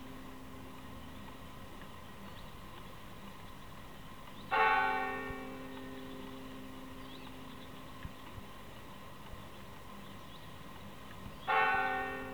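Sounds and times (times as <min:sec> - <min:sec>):
church bells ringing a rogation toll in Sangüesa: 0:04.6 - 0:06.1, 0:11.5 - 0:12.3.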